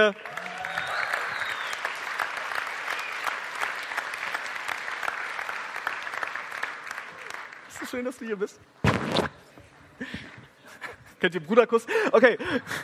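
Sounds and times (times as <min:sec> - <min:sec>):
speech: 0:00.0 - 0:00.4, 0:07.9 - 0:09.1, 0:11.2 - 0:12.8
crowd applause: 0:00.0 - 0:07.9.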